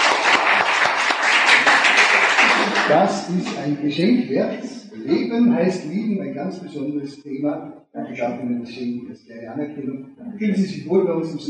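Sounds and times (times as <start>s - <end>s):
seminar audience clapping for married couples: 0.0s - 3.8s
speech: 2.9s - 11.4s.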